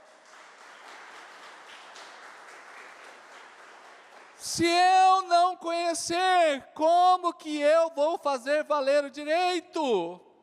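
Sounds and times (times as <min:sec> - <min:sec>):
audience applause: 0:00.0 - 0:04.5
speech: 0:04.4 - 0:10.3.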